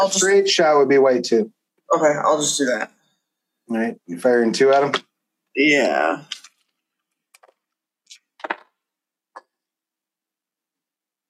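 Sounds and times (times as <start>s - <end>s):
speech: 0.0s - 3.0s, 3.7s - 6.4s
two dice being rolled: 7.3s - 8.8s.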